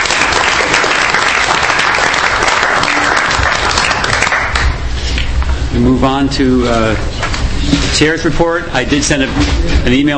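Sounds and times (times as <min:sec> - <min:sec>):
audience applause in council chambers: 0:00.0 - 0:04.8
speech: 0:05.8 - 0:10.1.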